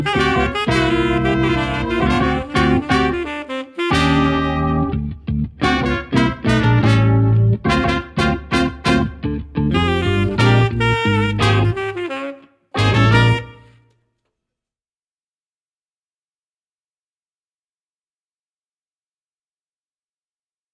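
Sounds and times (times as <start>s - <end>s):
backing track music: 0.0s - 13.8s.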